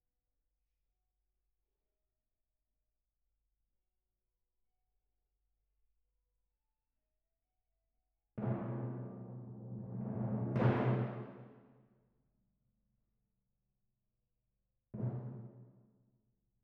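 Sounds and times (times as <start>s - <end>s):
timpani: 8.4s - 11.8s, 15.0s - 15.9s.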